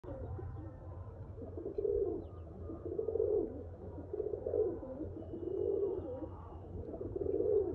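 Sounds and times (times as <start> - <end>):
pigeon: 0.0 - 7.7.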